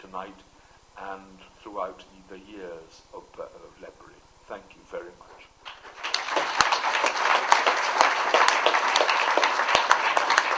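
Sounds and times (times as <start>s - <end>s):
speech: 0.1s - 5.5s
audience applause: 5.6s - 10.5s.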